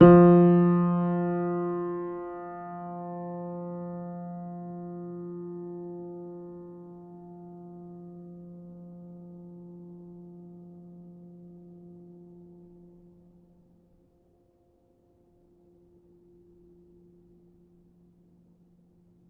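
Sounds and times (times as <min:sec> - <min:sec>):
upright piano: 0:00.0 - 0:12.8.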